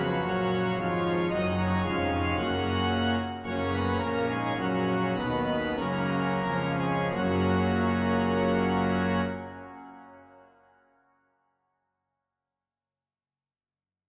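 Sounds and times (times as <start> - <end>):
organ: 0.0 - 10.4.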